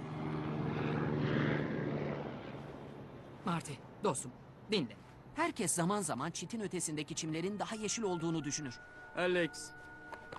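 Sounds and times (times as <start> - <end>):
helicopter flying overhead: 0.0 - 4.0
speech: 3.4 - 9.9.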